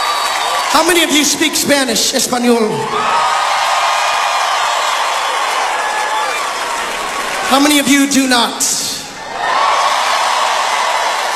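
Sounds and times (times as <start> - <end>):
audience cheering: 0.0 - 1.3, 2.8 - 8.1, 9.2 - 11.3
speech: 0.7 - 3.7, 7.5 - 8.8.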